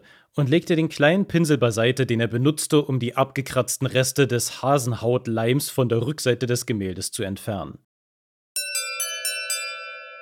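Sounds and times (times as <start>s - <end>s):
speech: 0.3s - 7.9s
electronic doorbell chiming: 8.6s - 10.1s.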